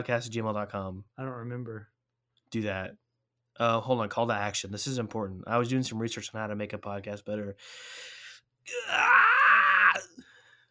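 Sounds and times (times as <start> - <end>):
speech: 0.0 - 3.0, 3.6 - 9.2
person screaming raspily like a rock singer: 8.7 - 10.2.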